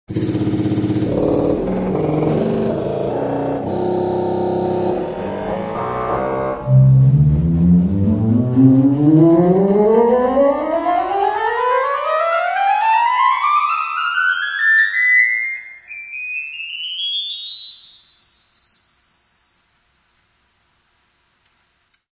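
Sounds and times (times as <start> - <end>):
church organ: 0.7 - 17.6.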